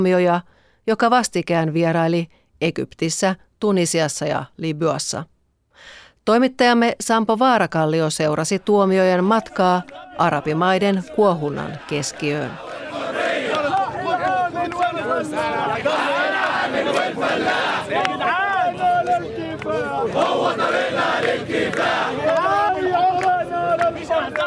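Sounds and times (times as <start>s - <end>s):
speech: 0.0s - 12.9s
large crowd roaring and chanting at Tahrir Square in Cairo: 9.3s - 24.4s
many voices shouting and calling out: 9.4s - 24.4s.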